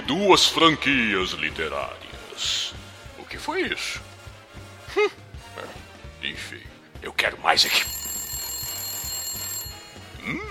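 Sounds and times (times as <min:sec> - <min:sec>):
speech: 0:00.1 - 0:02.8, 0:03.4 - 0:04.1, 0:05.0 - 0:05.7, 0:06.3 - 0:08.0
telephone ringing: 0:07.5 - 0:10.4.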